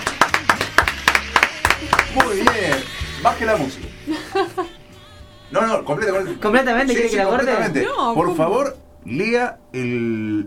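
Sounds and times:
small group clapping: 0.0 - 3.2
speech: 2.1 - 4.8, 5.5 - 10.4
laughter: 2.4 - 6.6.

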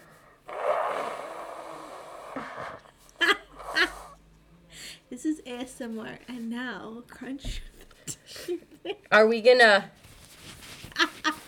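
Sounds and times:
person blowing nose: 0.0 - 4.2
speech: 5.5 - 7.7, 8.5 - 10.0.

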